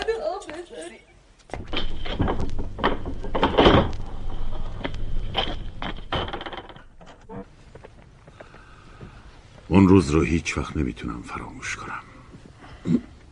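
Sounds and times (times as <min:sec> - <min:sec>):
quiet movement: 0:00.0 - 0:13.3
guard opening a door: 0:01.6 - 0:07.4
speech: 0:09.8 - 0:12.1, 0:12.8 - 0:13.1.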